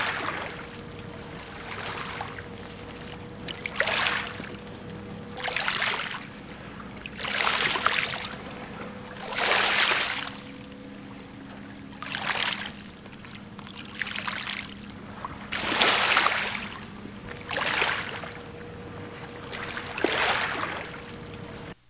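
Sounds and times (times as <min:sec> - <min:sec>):
ocean water lapping at lighthouses: 0:00.0 - 0:21.8.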